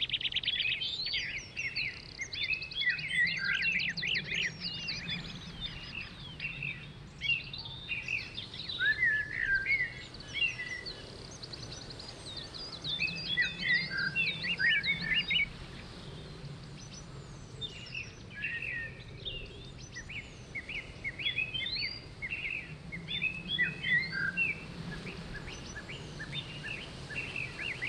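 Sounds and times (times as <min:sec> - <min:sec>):
morning breeze in the woods: 0:00.0 - 0:27.8.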